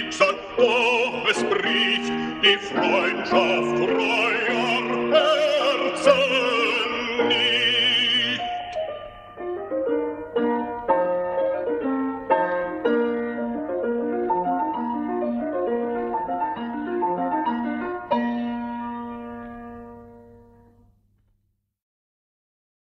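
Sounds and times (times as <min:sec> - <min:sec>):
solo voice singing a drinking song: 0:00.0 - 0:08.8
piano accompaniment: 0:00.0 - 0:21.1.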